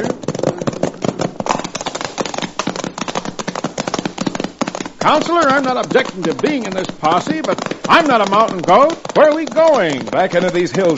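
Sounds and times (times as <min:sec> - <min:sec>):
horses galloping: 0:00.0 - 0:10.9
speech: 0:05.0 - 0:10.9.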